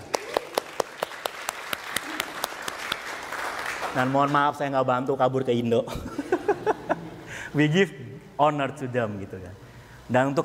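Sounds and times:
audience applause: 0.0s - 4.2s
speech: 3.9s - 6.2s, 7.6s - 10.4s
laughter: 5.9s - 7.4s.

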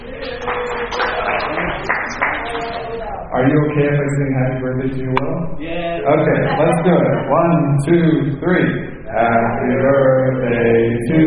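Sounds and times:
audience applause: 0.0s - 2.9s
speech: 3.3s - 11.2s.

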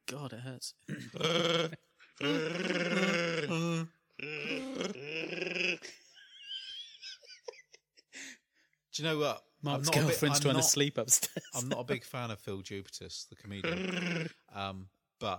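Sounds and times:
speech: 0.1s - 6.0s, 9.0s - 15.3s
man imitating a Wookiee growl made breathing in: 1.0s - 6.0s, 13.6s - 14.5s.

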